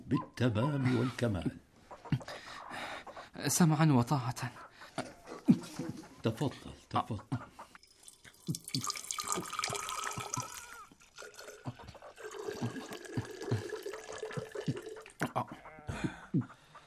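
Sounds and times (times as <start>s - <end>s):
speech: 0.1s - 1.6s, 3.4s - 7.6s, 8.5s - 9.8s
water pouring into a vessel: 7.8s - 15.2s.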